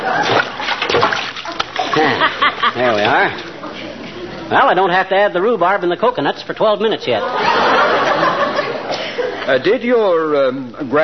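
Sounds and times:
potatoes splashing into a pot of water: 0.0s - 2.1s
laughter: 1.4s - 4.5s, 7.2s - 9.6s
speech: 2.8s - 3.5s, 4.5s - 7.5s, 9.5s - 11.0s.

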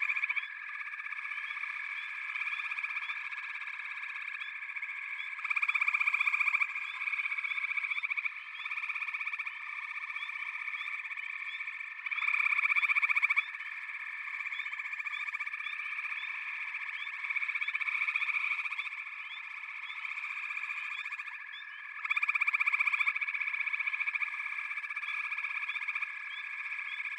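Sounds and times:
frog chorus of dense overlapping pulsed trills: 0.0s - 27.1s.

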